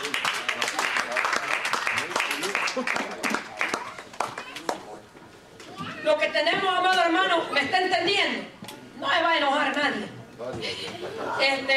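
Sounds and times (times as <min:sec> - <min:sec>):
audience clapping: 0:00.0 - 0:04.9
laughter: 0:02.4 - 0:03.4, 0:10.6 - 0:11.7
speech: 0:02.8 - 0:03.0, 0:06.4 - 0:11.7.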